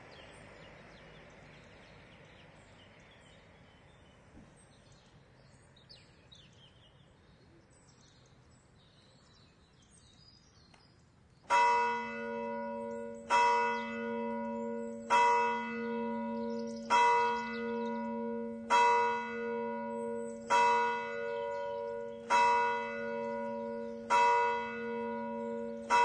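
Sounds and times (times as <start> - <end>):
bells in Aureilhan: 11.5 - 26.0.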